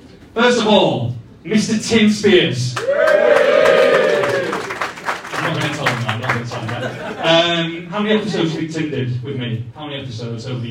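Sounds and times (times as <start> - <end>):
speech: 0.4 - 3.6, 7.2 - 10.6
live audience cheering and whooping: 2.8 - 4.9
scattered claps: 4.2 - 6.8
laughter: 6.5 - 8.7.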